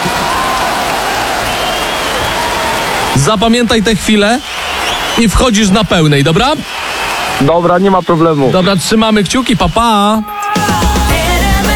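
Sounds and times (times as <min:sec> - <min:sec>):
audience applause: 0:00.0 - 0:09.1
speech: 0:03.2 - 0:04.5, 0:05.2 - 0:06.8, 0:07.4 - 0:10.9.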